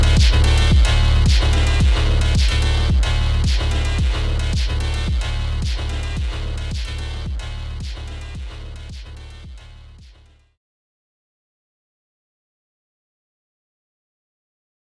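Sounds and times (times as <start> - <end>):
phonk music: 0.0 - 10.1.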